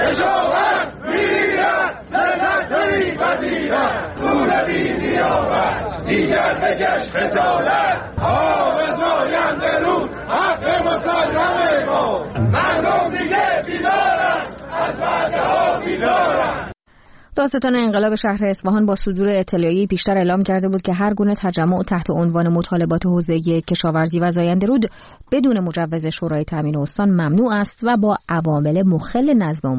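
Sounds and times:
protesting crowd chanting slogans at a rally: 0.0 - 16.8
speech: 6.1 - 13.1, 17.4 - 29.7.

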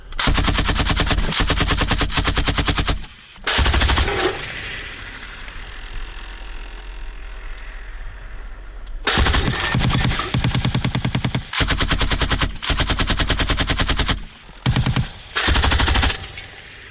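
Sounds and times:
machine gun fire: 0.2 - 5.1, 9.0 - 16.6.

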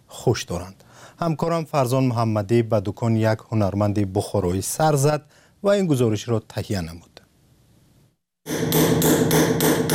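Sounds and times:
speech: 0.2 - 7.1
craftsmen hammering metal engravings: 8.5 - 9.9.

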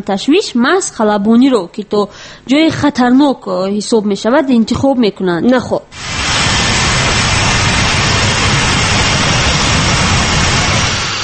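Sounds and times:
speech: 0.0 - 6.2
Boeing airliner jet engine roaring on a flight from Dushanbe: 6.0 - 11.2.

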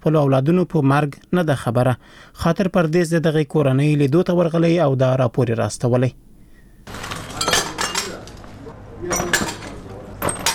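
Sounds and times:
speech: 0.0 - 7.0
broken glass shards being gathered up in a room wrecked by a missile strike: 6.9 - 8.4, 9.1 - 10.5.

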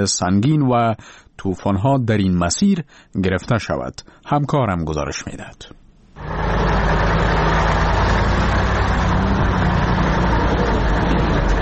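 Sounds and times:
speech: 0.0 - 6.4
passenger and cargo vehicle convoy traffic in Salang valley: 6.2 - 11.6.

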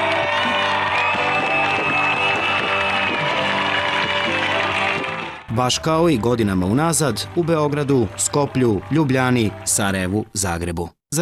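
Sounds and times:
music with a steady beat: 0.0 - 5.5
concert crowd applauding: 0.0 - 10.2
speech: 5.6 - 11.2.

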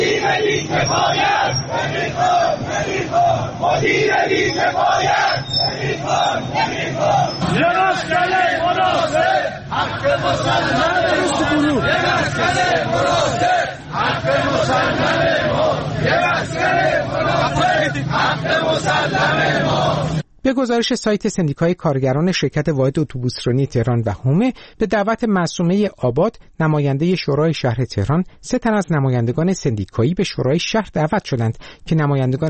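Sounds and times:
protesters chanting slogans at a rally: 0.0 - 20.2
speech: 0.3 - 32.4.

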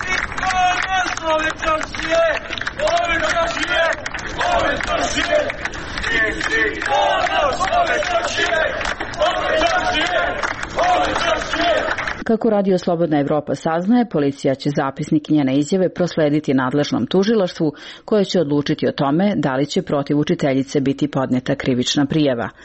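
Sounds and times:
citizens shouting outside a police station: 0.0 - 12.2
speech: 12.3 - 22.6.

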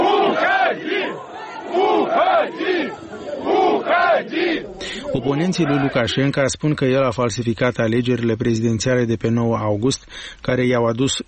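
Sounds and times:
striking workers shouting at a leader: 0.0 - 6.3
speech: 5.2 - 11.2.

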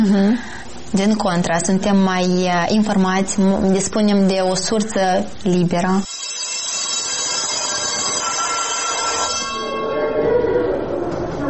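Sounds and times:
speech: 0.0 - 6.1
electric school bell ringing for the start of class: 6.0 - 10.4.

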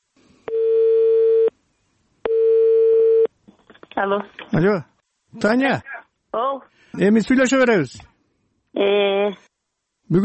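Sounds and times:
telephone ringback tone on an outgoing call: 0.5 - 1.5, 2.3 - 3.3
speech: 4.0 - 8.1, 8.8 - 9.5.

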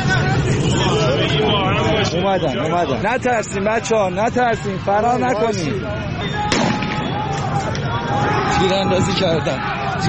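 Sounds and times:
crowd babble in a city square: 0.0 - 10.0
speech: 2.3 - 6.4, 7.6 - 10.0
sharp bang: 6.5 - 7.2.

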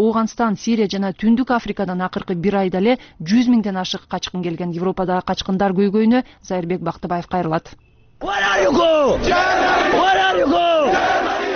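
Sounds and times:
speech: 0.0 - 11.5
crowd of migrants chanting outside Budapest's Keleti railway station: 8.2 - 11.5.

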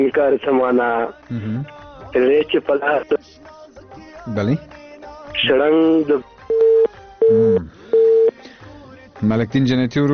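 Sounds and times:
speech: 0.0 - 3.5, 4.2 - 4.8, 5.4 - 6.3, 7.3 - 7.8, 9.2 - 10.1
telephone busy tone after a phone line is cut: 6.5 - 8.4.

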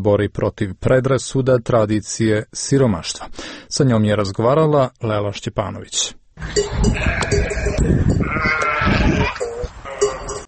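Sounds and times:
speech: 0.0 - 8.5
flock of about 200 sheep bleating near Nikšić, Montenegro: 6.4 - 10.4.

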